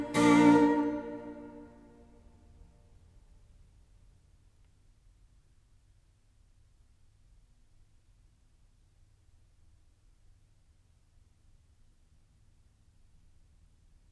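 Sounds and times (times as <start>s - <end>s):
violin sonata in B flat allegro grazioso movement: 0.0s - 2.0s.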